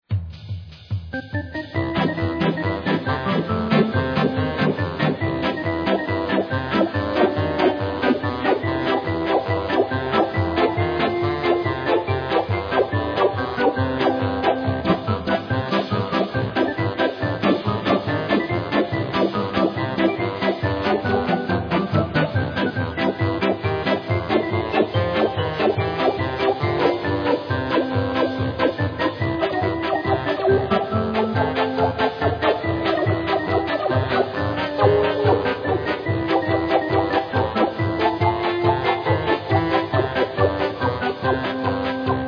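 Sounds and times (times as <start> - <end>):
funny music: 0.1 - 42.2.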